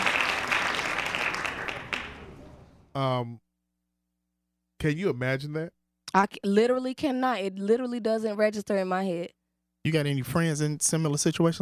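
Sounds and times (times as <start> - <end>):
crowd hand claps: 0.0 - 2.7
speech: 3.0 - 3.5, 4.8 - 11.6.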